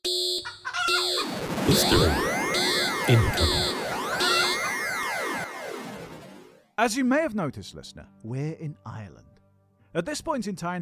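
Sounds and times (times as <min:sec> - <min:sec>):
alarm sound effect: 0:01.0 - 0:06.6
speech: 0:01.7 - 0:02.3, 0:03.1 - 0:03.7, 0:06.8 - 0:09.3, 0:09.9 - 0:10.7.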